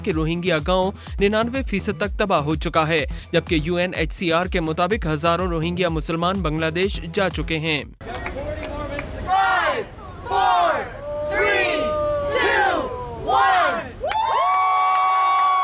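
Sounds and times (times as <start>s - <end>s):
speech: 0.0s - 8.4s
crowd cheering and high-pitched whoops: 9.3s - 15.6s.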